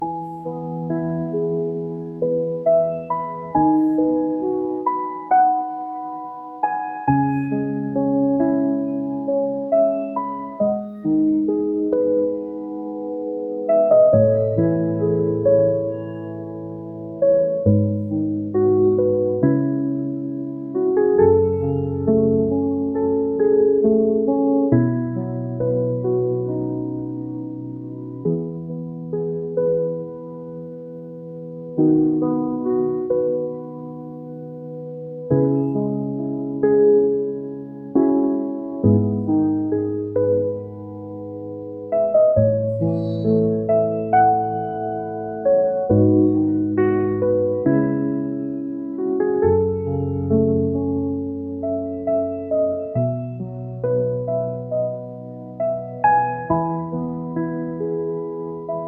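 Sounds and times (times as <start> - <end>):
calm piano: 0.0 - 58.8.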